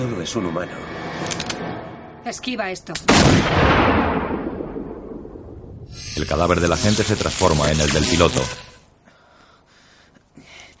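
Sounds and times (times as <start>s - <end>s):
speech: 0.0s - 1.2s, 2.2s - 4.1s, 5.9s - 8.6s
gunshots: 3.1s - 5.0s.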